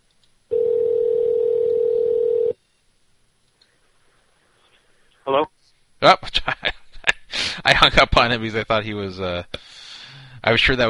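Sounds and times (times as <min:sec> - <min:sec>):
electronic ringback tone from an outgoing phone call: 0:00.5 - 0:02.6
speech: 0:06.0 - 0:06.6, 0:07.8 - 0:09.8, 0:10.4 - 0:10.8.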